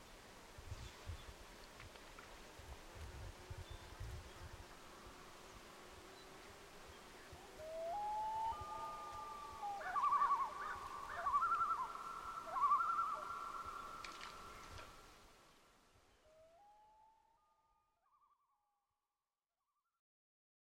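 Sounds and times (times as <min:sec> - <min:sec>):
loon wailing: 0:07.6 - 0:13.4.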